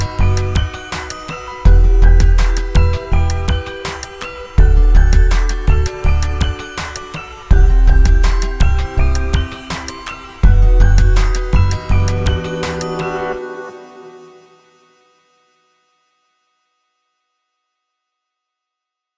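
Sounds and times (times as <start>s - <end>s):
laid back hip hop beat: 0.0s - 14.6s.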